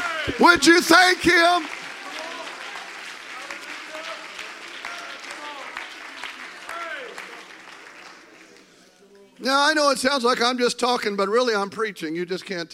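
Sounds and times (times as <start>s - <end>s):
voices calling out and cheering: 0.0s - 5.8s
large audience clapping hands: 0.0s - 8.9s
speech: 0.2s - 1.8s, 9.4s - 12.7s.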